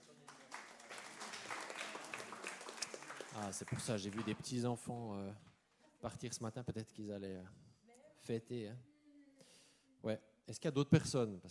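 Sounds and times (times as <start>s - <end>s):
audience applause: 0.0s - 4.5s
speech: 3.4s - 7.6s, 8.2s - 8.9s, 10.0s - 11.5s.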